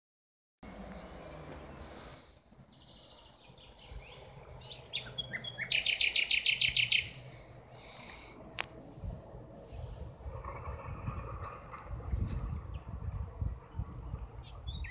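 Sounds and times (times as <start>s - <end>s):
common nightingale song: 1.5s - 8.1s, 10.5s - 14.8s.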